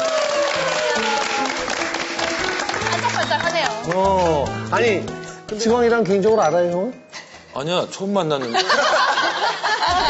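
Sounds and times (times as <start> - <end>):
audience applause: 0.0 - 4.0
laughter: 2.8 - 3.7, 8.4 - 10.0
speech: 3.9 - 7.0, 7.6 - 8.9.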